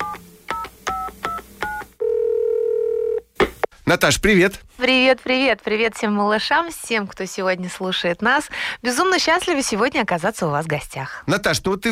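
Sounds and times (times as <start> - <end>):
sustained phone tone: 0.0 - 3.2
speech: 3.9 - 11.8.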